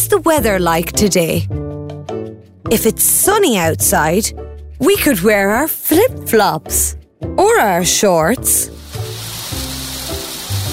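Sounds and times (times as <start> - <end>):
speech: 0.1 - 1.6, 2.6 - 8.8
rain falling: 8.8 - 10.7.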